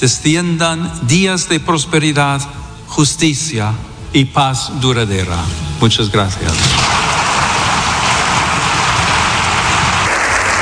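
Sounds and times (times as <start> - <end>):
speech: 0.0 - 7.2
long audience applause: 6.8 - 10.6.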